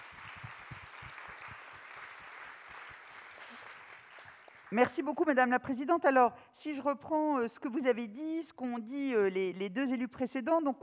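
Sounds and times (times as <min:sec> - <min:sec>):
audience applause: 0:00.0 - 0:04.8
speech: 0:04.7 - 0:10.8.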